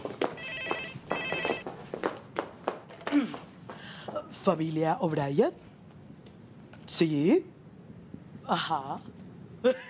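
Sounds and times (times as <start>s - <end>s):
household telephone ringing with electronic buzzing tones: 0.4s - 1.7s
speech: 4.5s - 5.7s, 7.0s - 7.5s, 8.5s - 9.8s.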